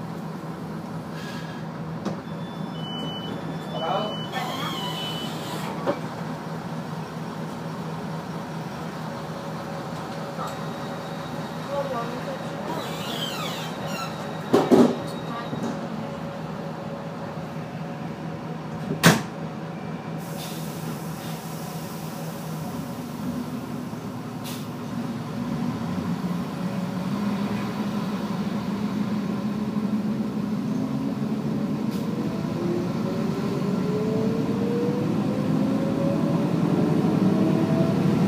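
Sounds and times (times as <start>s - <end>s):
train to Cividale: 0.0s - 38.2s.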